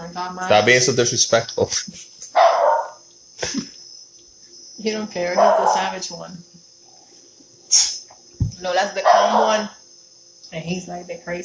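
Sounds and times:
speech: 0.1s - 2.3s, 3.4s - 3.7s, 4.8s - 6.6s, 7.7s - 7.9s, 8.6s - 9.8s, 10.5s - 11.4s
dog barking: 2.3s - 3.0s, 5.4s - 5.9s, 9.0s - 9.6s.

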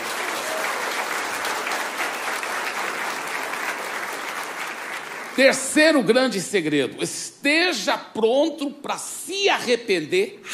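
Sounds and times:
audience applause: 0.0s - 5.6s
speech: 5.4s - 10.5s.

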